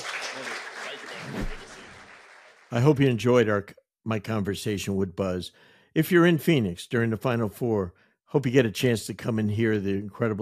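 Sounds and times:
audience applause: 0:00.0 - 0:02.8
speech: 0:02.7 - 0:10.4.

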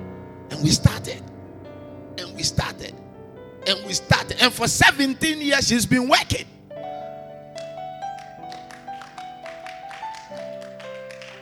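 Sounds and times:
speech: 0:00.5 - 0:01.3, 0:02.2 - 0:06.5
audience clapping: 0:07.6 - 0:11.4.

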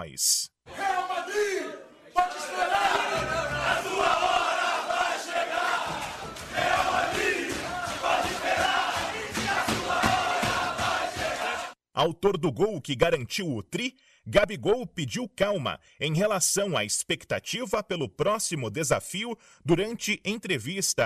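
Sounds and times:
speech: 0:00.0 - 0:00.5, 0:12.0 - 0:21.0
group chant in Flamengo locker room: 0:00.7 - 0:11.8.

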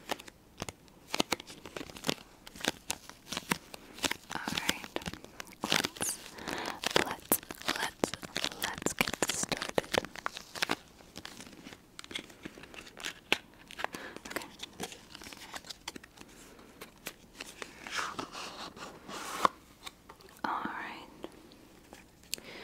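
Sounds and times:
tarot cards drawn out of their box: 0:01.1 - 0:20.0
person whispering: 0:04.3 - 0:10.0, 0:20.4 - 0:21.4.

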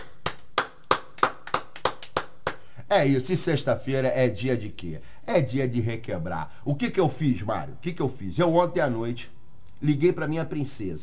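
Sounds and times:
round of applause: 0:00.0 - 0:02.6
speech: 0:02.9 - 0:11.0.

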